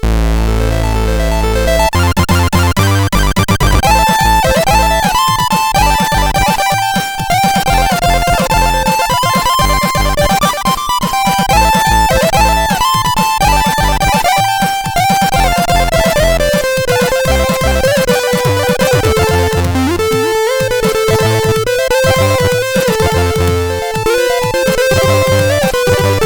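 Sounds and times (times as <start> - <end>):
tune on CSG8580R5 chip: 0.0 - 26.2.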